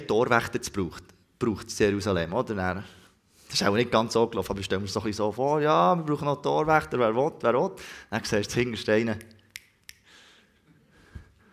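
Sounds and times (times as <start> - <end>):
speech: 0.1 - 9.4
finger snaps: 9.2 - 10.2.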